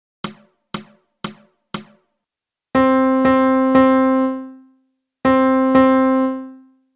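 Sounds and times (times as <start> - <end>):
melody: 2.8 - 6.7.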